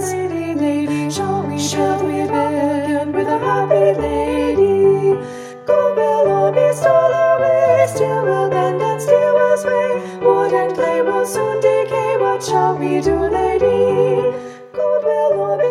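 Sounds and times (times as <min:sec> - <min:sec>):
piano melody in unison in a studio: 0:00.0 - 0:15.6.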